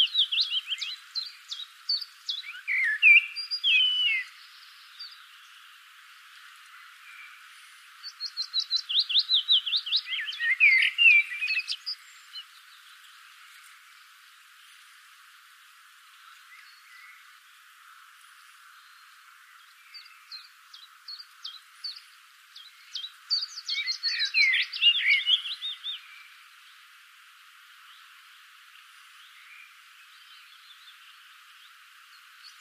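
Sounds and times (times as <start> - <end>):
common blackbird calls: 0.0 - 5.2, 8.0 - 12.6, 19.9 - 26.1.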